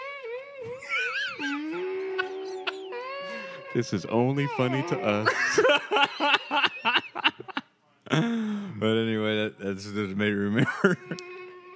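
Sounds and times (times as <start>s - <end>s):
laughter: 0.6s - 3.6s, 4.8s - 8.4s, 10.6s - 11.2s
person imitating whale song: 0.7s - 3.8s
speech: 3.7s - 7.0s, 8.2s - 11.3s.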